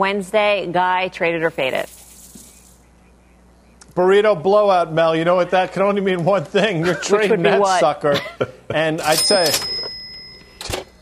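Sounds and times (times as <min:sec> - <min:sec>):
speech: 0:00.0 - 0:02.0, 0:04.0 - 0:09.7
laughter: 0:06.4 - 0:09.0
cash register sound effect: 0:09.0 - 0:10.9.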